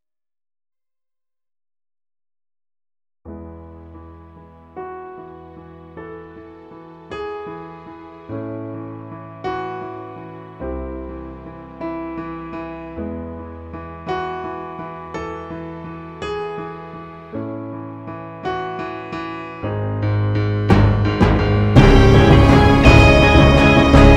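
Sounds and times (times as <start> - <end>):
trailer music: 20.7 - 24.1.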